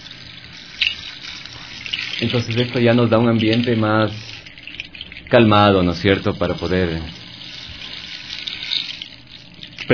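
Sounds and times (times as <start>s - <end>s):
rain stick cascading: 0.0s - 9.9s
speech: 2.2s - 4.3s, 5.3s - 7.2s.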